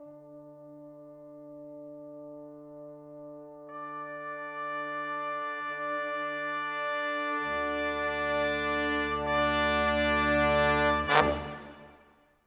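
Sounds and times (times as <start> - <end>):
orchestral brass in rock pop style: 3.7 - 12.2.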